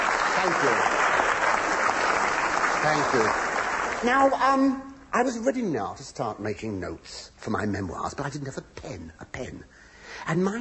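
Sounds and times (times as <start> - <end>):
audience applause: 0.0 - 4.4
speech: 0.4 - 1.0, 2.8 - 10.6.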